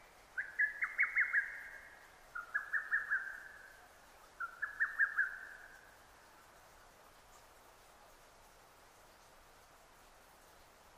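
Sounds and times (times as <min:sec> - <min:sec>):
background hiss: 0:00.0 - 0:10.9
lesser cuckoo song: 0:00.4 - 0:01.8, 0:02.4 - 0:03.6, 0:04.4 - 0:05.6.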